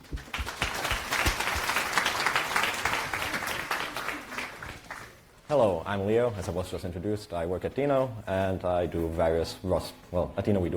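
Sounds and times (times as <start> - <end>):
audience applause: 0.0 - 5.2
speech: 5.5 - 10.7.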